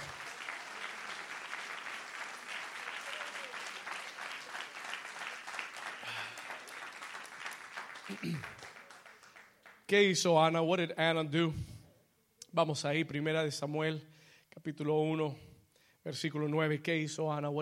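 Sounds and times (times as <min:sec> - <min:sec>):
loud audience applause: 0:00.0 - 0:09.9
speech: 0:08.1 - 0:08.6, 0:09.9 - 0:11.7, 0:12.5 - 0:17.6.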